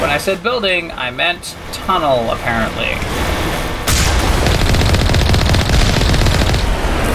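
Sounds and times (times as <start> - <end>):
speech: 0.1 - 3.3
automatic gunfire from Geth enemies at a rover tank in a video game: 3.9 - 7.0.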